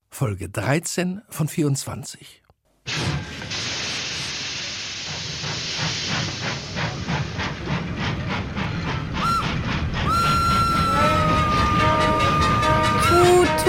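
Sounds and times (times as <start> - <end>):
speech: 0.2 - 3.1
steam train rumbling along the rails with hissing rhythmic chuffing: 3.4 - 13.6
long steady steam train whistle: 9.2 - 13.6.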